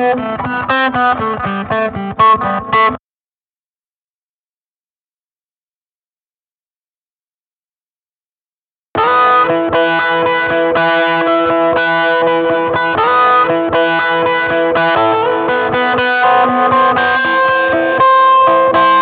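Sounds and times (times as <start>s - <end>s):
two guitars improvising: 0.0s - 3.0s, 9.0s - 18.9s.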